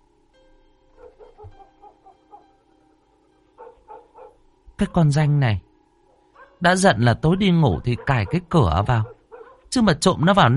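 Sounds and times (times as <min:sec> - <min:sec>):
dog barking and yipping: 0:01.0 - 0:02.4, 0:03.6 - 0:04.4, 0:06.4 - 0:06.6, 0:07.2 - 0:09.7
speech: 0:04.8 - 0:05.7, 0:06.6 - 0:10.5.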